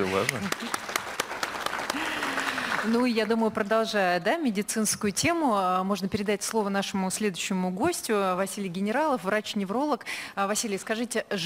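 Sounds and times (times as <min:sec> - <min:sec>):
speech: 0:00.0 - 0:00.8, 0:02.8 - 0:11.4
audience applause: 0:00.0 - 0:03.4.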